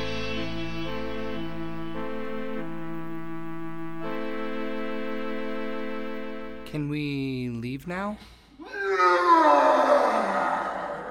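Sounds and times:
speech: 6.7s - 8.4s
monster wailing outside the door: 8.6s - 11.0s.

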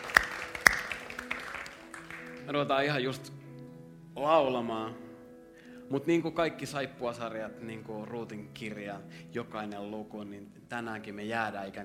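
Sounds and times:
audience applause: 0.0s - 2.5s
speech: 2.5s - 3.4s, 4.2s - 5.0s, 5.9s - 11.8s.

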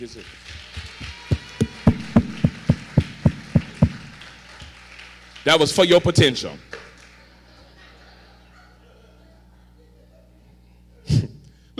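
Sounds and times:
speech: 0.0s - 0.6s, 5.4s - 6.8s
audience applause: 0.0s - 9.2s
laughter: 6.6s - 11.3s.

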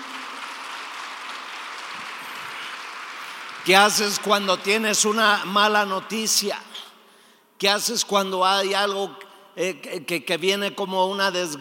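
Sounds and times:
audience applauding: 0.0s - 4.8s
speech: 3.6s - 6.7s, 7.6s - 11.5s.

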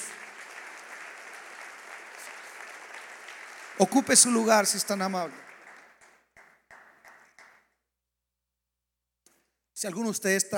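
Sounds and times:
audience applauding: 0.0s - 7.7s
speech: 3.8s - 5.5s, 9.8s - 10.5s.

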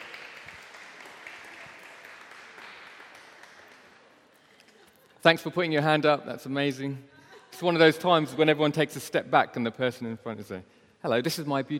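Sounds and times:
audience applause: 0.0s - 4.3s
speech: 5.2s - 11.7s.

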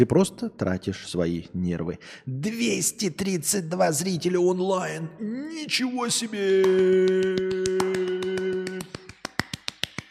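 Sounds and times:
speech: 0.0s - 8.0s
rapid hand clapping: 6.4s - 10.0s.

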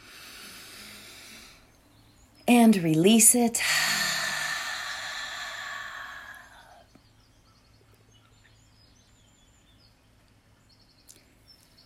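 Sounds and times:
deep breath in during a guided mantra meditation: 0.0s - 1.7s, 3.6s - 6.8s
speech: 2.5s - 4.0s.

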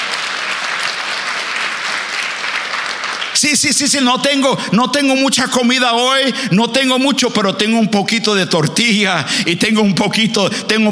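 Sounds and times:
audience applause: 0.0s - 3.5s
speech: 3.4s - 10.8s.

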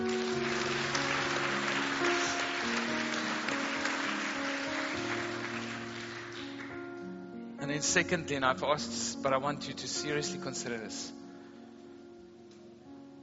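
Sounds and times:
audience cheering and applauding: 0.0s - 6.8s
sustained keyboard chords: 0.0s - 13.2s
speech: 7.7s - 11.2s.

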